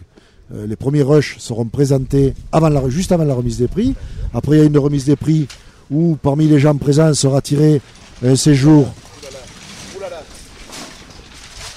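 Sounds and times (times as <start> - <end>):
speech: 0.5 - 9.4
gust of wind: 1.9 - 4.9.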